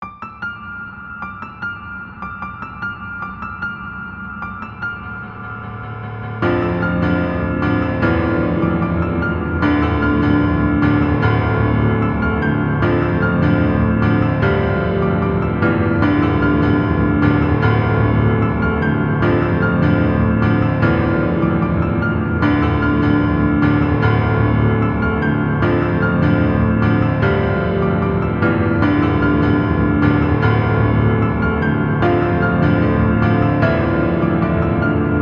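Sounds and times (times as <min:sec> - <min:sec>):
piano cover: 0:00.0 - 0:35.1.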